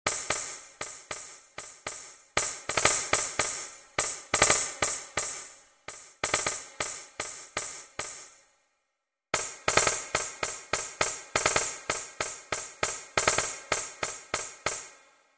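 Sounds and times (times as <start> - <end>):
tambourine: 0.1 - 8.4, 9.4 - 15.0.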